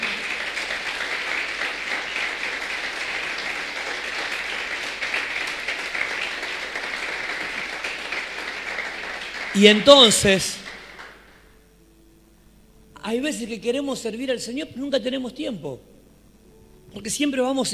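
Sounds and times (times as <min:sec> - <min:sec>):
audience applause: 0:00.0 - 0:11.4
speech: 0:09.6 - 0:10.6, 0:13.1 - 0:15.9, 0:17.0 - 0:17.7.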